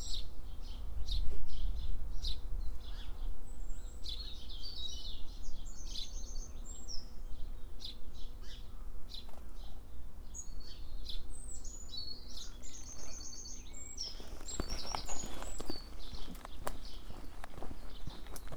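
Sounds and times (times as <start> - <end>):
birdsong along the East Devon Way: 0.0 - 18.5
scattered clicks and rustles: 13.9 - 18.5.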